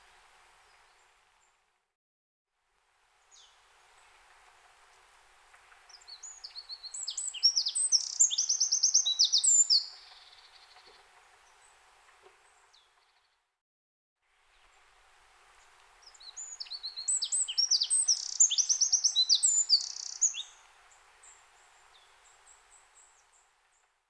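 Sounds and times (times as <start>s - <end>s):
Eurasian wren song: 6.2s - 10.4s, 16.3s - 20.6s.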